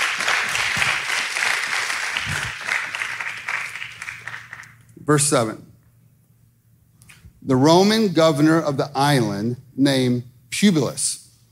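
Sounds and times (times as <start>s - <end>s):
crowd applauding: 0.0s - 4.8s
speech: 5.1s - 5.7s, 7.5s - 11.2s.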